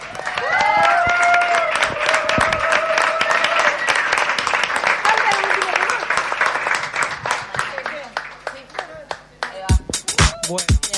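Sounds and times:
cheering and whooping voices: 0:00.0 - 0:06.1
live audience applause: 0:00.0 - 0:10.7.

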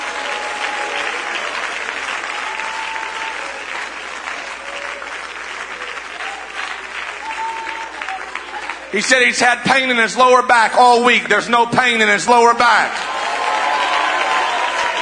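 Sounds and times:
audience clapping hands: 0:00.0 - 0:15.0
speech: 0:08.9 - 0:13.2.

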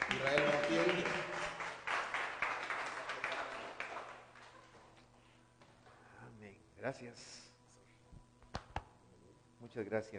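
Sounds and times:
audience applause: 0:00.0 - 0:04.9
speech: 0:06.8 - 0:07.5, 0:09.6 - 0:10.1.

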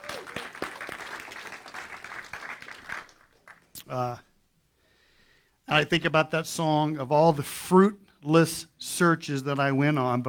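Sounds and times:
audience hand clapping: 0:00.0 - 0:03.8
speech: 0:03.9 - 0:04.3, 0:05.7 - 0:10.2.

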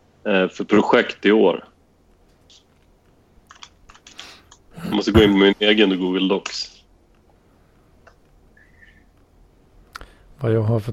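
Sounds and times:
speech: 0:00.2 - 0:01.7, 0:04.9 - 0:06.7, 0:10.4 - 0:10.9
faint typing on a computer keyboard into Google Docs: 0:03.5 - 0:04.6.

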